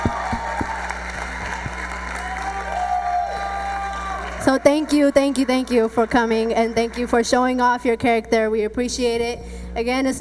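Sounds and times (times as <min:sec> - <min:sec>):
audience applause: 0:00.0 - 0:07.2
speech: 0:04.4 - 0:10.1.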